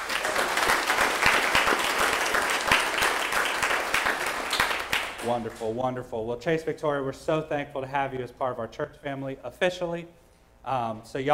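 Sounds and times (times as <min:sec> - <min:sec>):
church congregation applause: 0:00.0 - 0:05.5
speech: 0:05.2 - 0:11.3.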